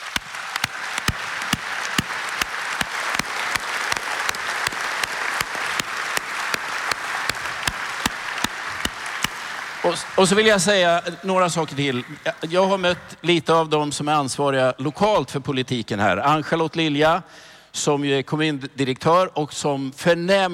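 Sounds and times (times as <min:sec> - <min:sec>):
audience applause for volunteers: 0:00.0 - 0:10.7
speech: 0:09.9 - 0:20.5.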